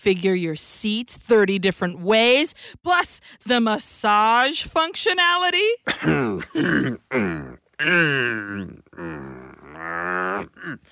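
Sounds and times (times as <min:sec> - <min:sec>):
speech: 0:00.0 - 0:10.9
person choking and throat-clearing with something stuck in the throat: 0:05.9 - 0:10.9.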